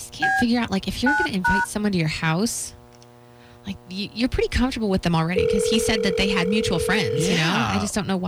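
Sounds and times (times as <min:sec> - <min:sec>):
speech: 0:00.4 - 0:02.8, 0:03.7 - 0:08.2
telephone keypad dialing tones: 0:05.3 - 0:07.9.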